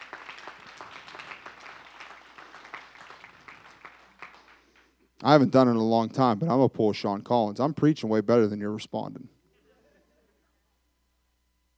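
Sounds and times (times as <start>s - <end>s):
audience clapping: 0.0s - 5.1s
speech: 5.2s - 9.4s.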